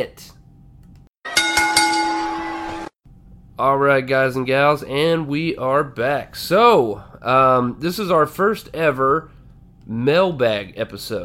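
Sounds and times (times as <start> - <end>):
speech: 0.0 - 0.3, 3.6 - 11.2
quick wrestling bell: 1.3 - 2.9.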